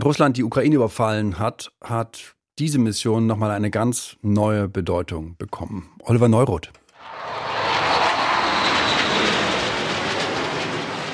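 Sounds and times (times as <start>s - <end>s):
speech: 0.0s - 7.4s
Eurofighter combat jet taking off in Estonia: 7.0s - 11.1s.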